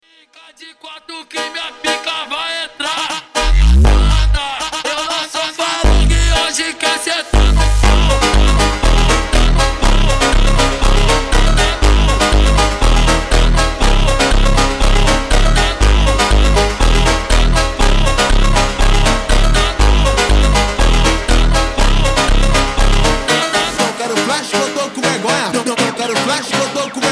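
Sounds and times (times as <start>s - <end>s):
super slowed phonk montagem music: 1.1s - 27.0s.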